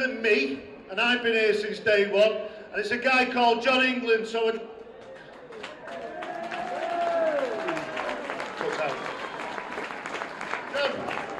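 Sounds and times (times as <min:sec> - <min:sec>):
speech: 0:00.0 - 0:04.7
round of applause for a longtime behind-the-scenes club worker: 0:04.9 - 0:11.3.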